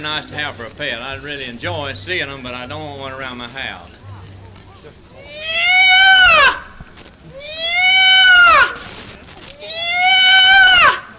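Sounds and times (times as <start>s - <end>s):
speech: 0.0s - 4.0s
peafowl wailing calls: 5.2s - 8.8s, 9.6s - 11.1s.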